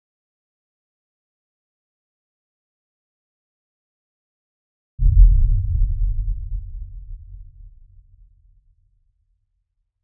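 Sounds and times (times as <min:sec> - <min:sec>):
low movie boom: 0:05.0 - 0:08.8.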